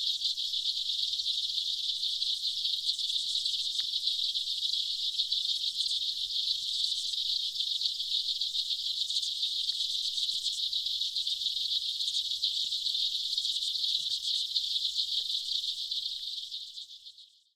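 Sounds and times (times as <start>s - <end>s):
aquatic insects: 0.0s - 17.5s.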